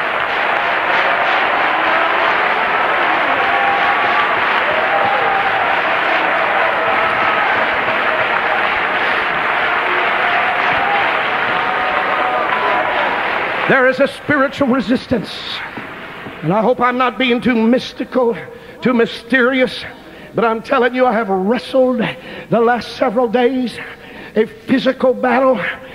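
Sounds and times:
audience clapping: 0.0 - 17.0
speech: 13.7 - 15.8, 16.4 - 25.8.

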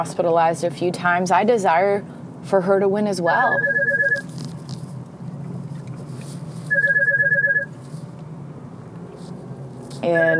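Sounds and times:
speech: 0.0 - 4.3, 10.0 - 10.3
low hum: 0.0 - 10.3
phone ringing with a pulsing electronic tone: 3.4 - 4.3, 6.7 - 7.7, 10.0 - 10.3.

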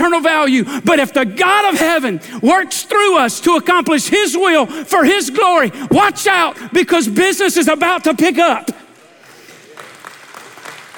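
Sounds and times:
speech: 0.0 - 8.8
hesitant audience clapping: 8.9 - 10.9.

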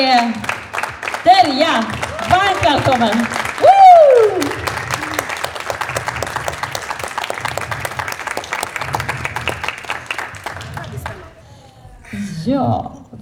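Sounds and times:
speech: 0.0 - 0.5, 1.2 - 3.8, 12.4 - 13.0
audience applause at a prize ceremony: 0.0 - 11.8.

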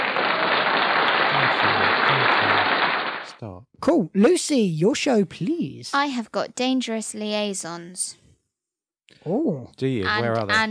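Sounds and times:
crowd applauding: 0.0 - 3.3
speech: 3.4 - 8.2, 9.2 - 10.6.

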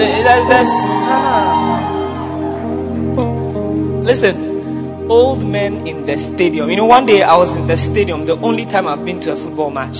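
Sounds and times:
speech: 0.0 - 1.3, 4.1 - 4.5, 5.1 - 9.9
large stadium crowd shouting and cheering: 0.0 - 3.2.

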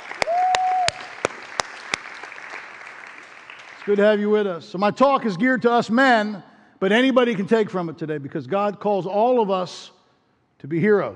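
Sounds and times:
church congregation clapping for dads on Father's Day: 0.0 - 4.5
speech: 3.9 - 10.0, 10.6 - 11.1.

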